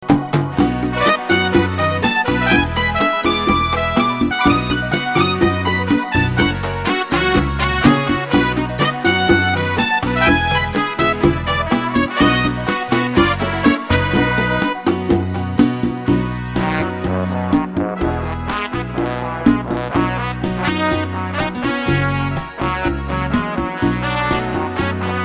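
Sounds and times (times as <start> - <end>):
cha cha rock music: 0.0 - 25.2.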